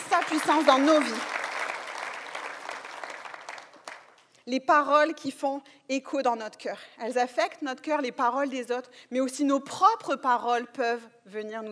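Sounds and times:
church congregation applause praising God: 0.0 - 4.3
speech: 0.3 - 1.4, 4.5 - 11.6.

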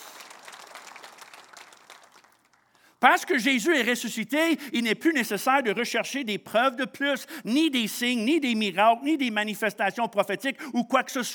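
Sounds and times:
church congregation applauding during a service: 0.0 - 3.0
speech: 3.0 - 11.3.

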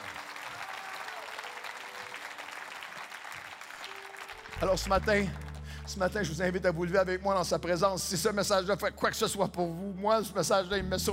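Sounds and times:
audience clapping: 0.0 - 7.8
speech: 4.6 - 11.1.

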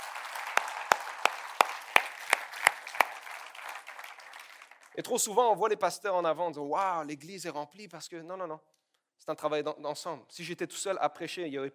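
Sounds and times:
audience applause: 0.0 - 5.0
speech: 5.0 - 11.7.

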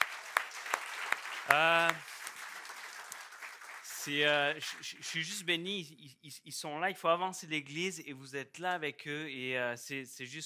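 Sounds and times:
audience applause: 0.0 - 5.0
speech: 4.1 - 10.4.

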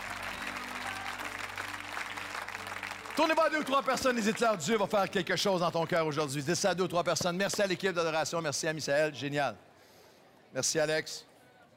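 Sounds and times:
church congregation applauding during a worship service: 0.0 - 5.2
speech: 3.2 - 9.7, 10.5 - 11.3.

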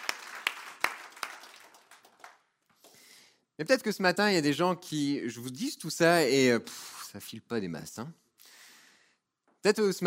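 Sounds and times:
audience applauding: 0.0 - 2.5
speech: 3.6 - 8.2, 9.6 - 10.0.

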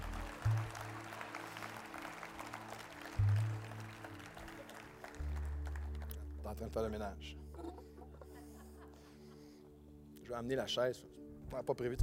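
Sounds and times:
audience applauding: 0.0 - 6.9
speech: 6.5 - 7.8, 10.3 - 12.0
laughter: 7.4 - 9.6.

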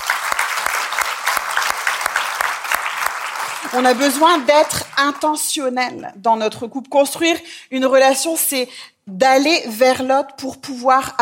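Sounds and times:
audience applauding: 0.0 - 5.4
speech: 3.7 - 11.1.

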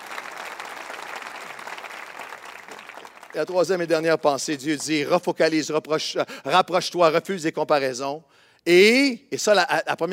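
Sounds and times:
audience applauding: 0.0 - 3.9
speech: 3.3 - 10.1.

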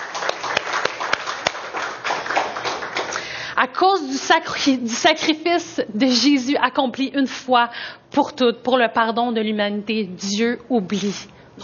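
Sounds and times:
audience clapping: 0.0 - 3.4
speech: 3.6 - 11.4.

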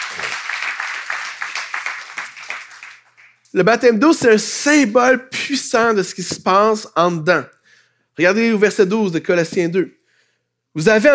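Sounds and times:
audience applauding: 0.0 - 3.5
speech: 3.5 - 7.6, 8.2 - 10.0, 10.8 - 11.1.

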